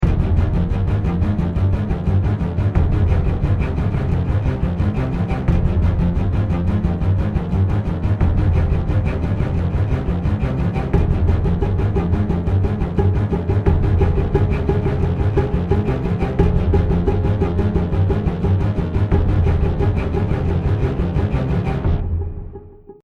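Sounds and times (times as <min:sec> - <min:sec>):
music: 0:00.0 - 0:23.0.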